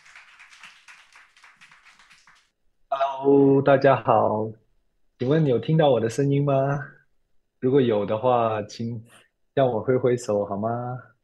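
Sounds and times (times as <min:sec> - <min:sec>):
people clapping to welcome: 0:00.0 - 0:02.6
speech: 0:03.2 - 0:04.6, 0:05.2 - 0:07.0, 0:07.6 - 0:11.1.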